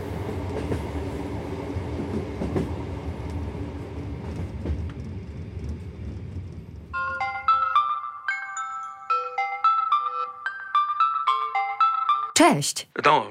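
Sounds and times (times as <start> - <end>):
rumbling train noise: 0.0 - 7.9
loud bright electronic ringtone of high beeping notes: 7.0 - 12.4
speech: 12.5 - 13.2.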